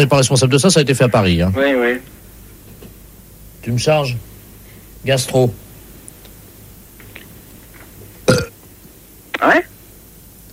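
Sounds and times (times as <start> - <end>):
speech: 0.0 - 2.2, 3.6 - 4.3, 5.0 - 5.6
burping played as phone hold audio: 8.2 - 8.6.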